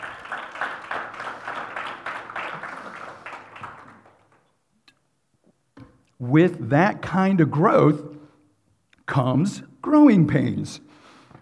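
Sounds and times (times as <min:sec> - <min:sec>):
church congregation applauding: 0:00.0 - 0:04.6
speech: 0:06.2 - 0:08.1, 0:09.2 - 0:11.0.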